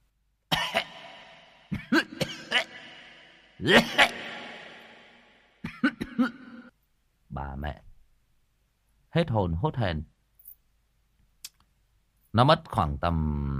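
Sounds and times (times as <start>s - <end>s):
person imitating coughing on an empty sound-dampened professional stage: 0.5s - 4.6s, 5.6s - 6.7s
speech: 3.6s - 4.1s, 9.3s - 10.2s, 12.4s - 13.5s.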